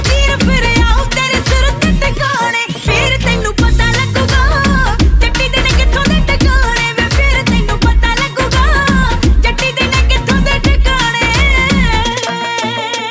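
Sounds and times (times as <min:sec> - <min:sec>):
woman singing a Punjabi song ringtone: 0:00.0 - 0:13.1.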